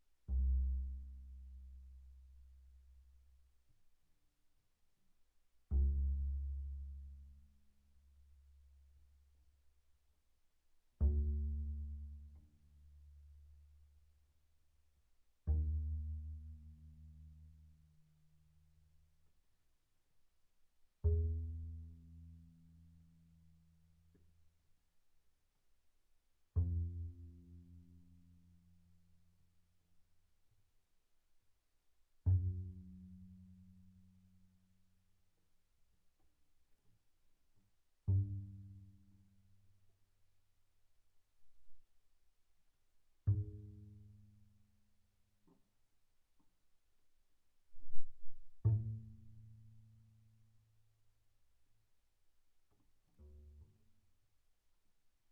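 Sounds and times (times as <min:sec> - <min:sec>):
double bass pizzicato on the A string, very soft: 0:00.2 - 0:03.0, 0:05.7 - 0:07.4, 0:11.0 - 0:13.7, 0:15.4 - 0:17.8, 0:21.0 - 0:23.3, 0:26.5 - 0:28.8, 0:32.2 - 0:34.4, 0:38.0 - 0:39.6, 0:43.2 - 0:44.7, 0:47.8 - 0:50.2.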